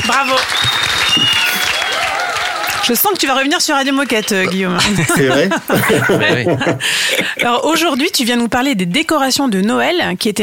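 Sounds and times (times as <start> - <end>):
speech: 0.0 - 1.4, 2.8 - 10.4
audience applause: 0.0 - 5.0
faint high whistling tone: 0.6 - 1.9
laughter: 4.1 - 7.6.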